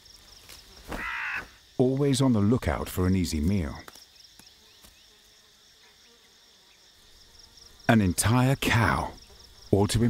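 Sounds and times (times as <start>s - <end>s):
crow cawing: 0.9s - 1.6s
speech: 1.8s - 3.9s, 7.9s - 10.0s.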